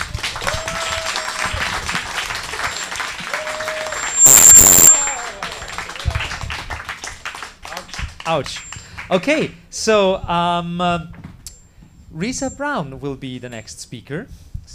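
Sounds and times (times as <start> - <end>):
audience applause: 0.0 - 9.1
speech: 8.3 - 11.2, 12.1 - 14.7.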